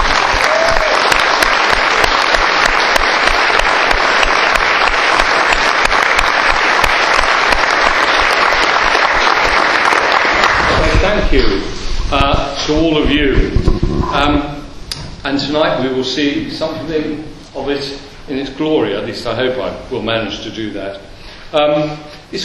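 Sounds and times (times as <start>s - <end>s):
loud applause from a large crowd: 0.0s - 11.4s
speech: 12.7s - 14.5s, 15.2s - 22.4s.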